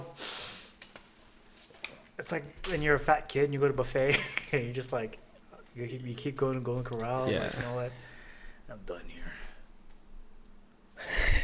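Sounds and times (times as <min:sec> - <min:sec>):
speech: 0:02.2 - 0:05.2, 0:05.8 - 0:08.1, 0:08.7 - 0:09.4
person yawning: 0:07.2 - 0:07.8.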